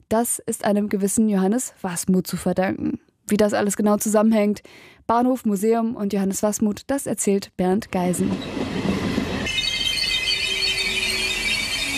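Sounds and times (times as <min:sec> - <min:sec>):
speech: 0:00.1 - 0:08.9
regional train braking into station with wheels squealing: 0:08.1 - 0:11.9.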